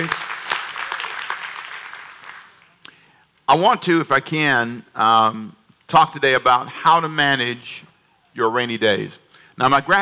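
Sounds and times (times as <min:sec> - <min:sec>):
speech: 0:00.0 - 0:00.2, 0:03.5 - 0:10.0
crowd applauding: 0:00.0 - 0:02.8.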